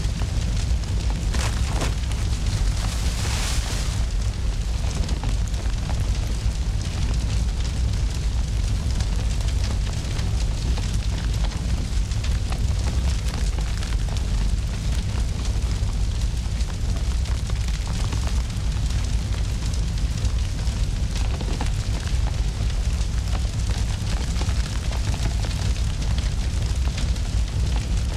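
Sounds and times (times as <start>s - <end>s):
brush fire burning: 0.0s - 28.1s.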